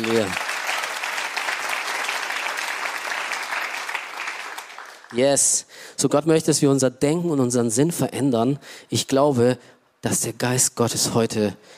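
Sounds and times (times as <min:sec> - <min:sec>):
speech: 0:00.0 - 0:00.4, 0:05.1 - 0:11.7
audience applause: 0:00.0 - 0:05.2.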